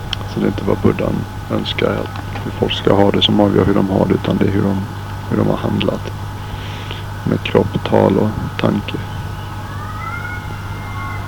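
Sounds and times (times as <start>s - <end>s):
speech: 0.4s - 6.2s, 7.2s - 9.1s
cats meowing: 1.8s - 11.2s.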